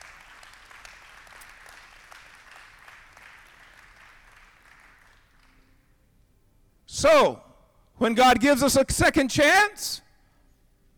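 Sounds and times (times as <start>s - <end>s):
audience hand clapping: 0.0s - 5.7s
speech: 7.0s - 7.4s, 8.0s - 10.0s.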